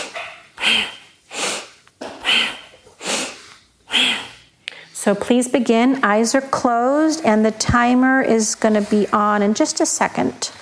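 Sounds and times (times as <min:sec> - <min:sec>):
audible purposeful breathing through the nose: 0:00.0 - 0:05.0
speech: 0:05.0 - 0:10.6.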